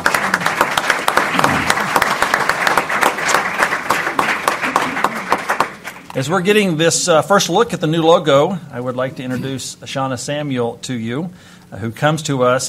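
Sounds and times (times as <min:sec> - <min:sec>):
audience applause: 0:00.0 - 0:06.2
speech: 0:06.2 - 0:12.6.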